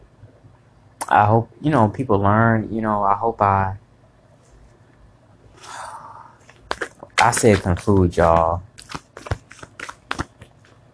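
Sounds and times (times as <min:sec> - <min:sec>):
speech: 0:01.1 - 0:03.8, 0:07.2 - 0:08.7
deck of cards shuffled before a spiritual card reading: 0:06.4 - 0:10.8.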